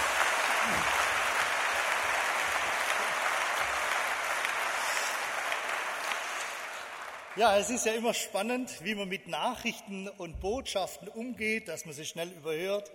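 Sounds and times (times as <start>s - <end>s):
audience applause: 0.0s - 8.0s
speech: 7.4s - 12.9s.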